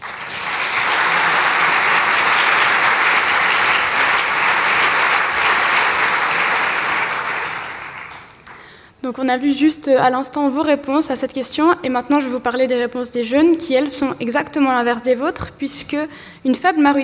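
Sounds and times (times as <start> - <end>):
warm audience applause: 0.0 - 8.7
speech: 9.1 - 17.0.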